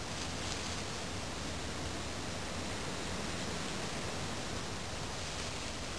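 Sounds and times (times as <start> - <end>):
road ambience: 0.0 - 5.9.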